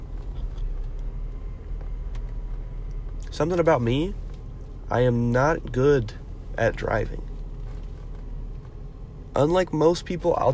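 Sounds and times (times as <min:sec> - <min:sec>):
car engine rumbling while being parked: 0:00.0 - 0:10.5
speech: 0:03.3 - 0:04.2, 0:04.9 - 0:07.3, 0:09.4 - 0:10.5.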